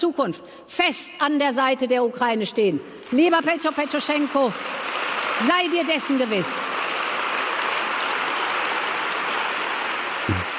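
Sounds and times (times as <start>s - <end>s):
speech: 0.0s - 6.8s
long applause from a large crowd: 4.1s - 10.5s.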